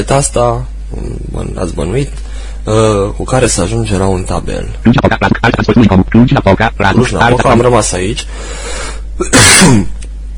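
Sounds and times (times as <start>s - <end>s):
speech: 0.0s - 10.0s
person clearing throat: 9.2s - 10.0s
person coughing: 9.2s - 10.0s.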